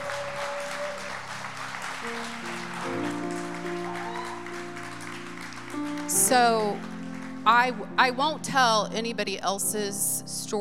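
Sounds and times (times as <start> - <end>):
audience applause: 0.0 - 7.5
speech: 6.3 - 10.5.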